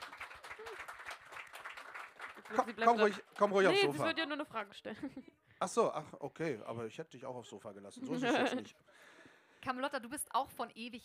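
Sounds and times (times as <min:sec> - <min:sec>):
audience applause: 0:00.0 - 0:04.0
speech: 0:02.5 - 0:11.0
laughter: 0:08.0 - 0:08.8.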